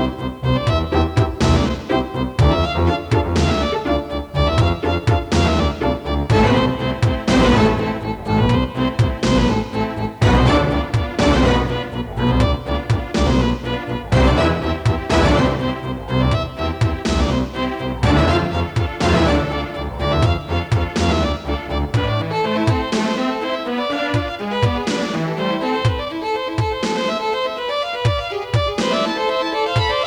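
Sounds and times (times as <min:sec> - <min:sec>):
violins playing classical arpeggios on tape: 0:00.0 - 0:30.0.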